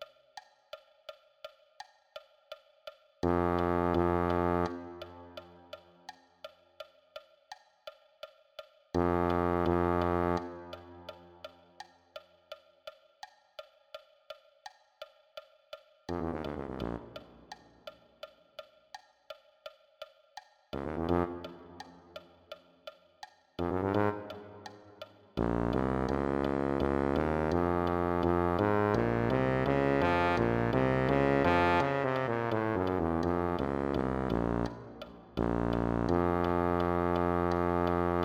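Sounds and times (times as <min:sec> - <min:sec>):
tuba: 0:03.2 - 0:06.1, 0:09.0 - 0:11.8, 0:16.1 - 0:18.0, 0:20.8 - 0:22.6, 0:23.6 - 0:38.2.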